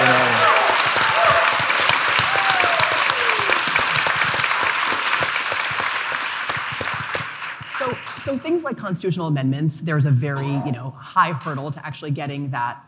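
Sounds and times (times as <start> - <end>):
audience applause for President Joe Biden: 0.0 - 8.4
speech: 8.9 - 12.8.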